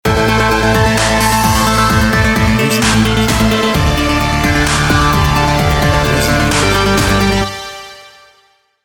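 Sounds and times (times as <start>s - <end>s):
dubstep music: 0.8s - 7.6s.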